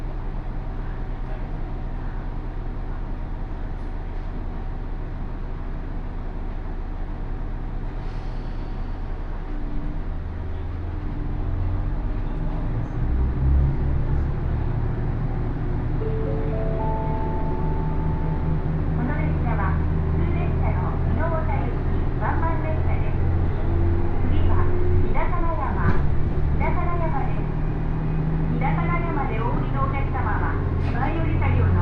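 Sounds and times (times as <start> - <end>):
local train on Takayama Main Line rumbling: 0.0 - 31.8
Takayama Main Line train engine droning: 7.3 - 31.8
speech: 19.0 - 23.2, 24.2 - 27.6, 28.5 - 31.8.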